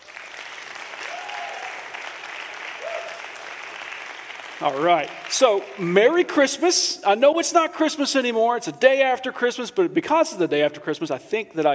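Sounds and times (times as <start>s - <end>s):
audience applause: 0.0s - 5.9s
whoops: 1.0s - 1.9s, 2.7s - 3.4s
speech: 4.6s - 11.7s.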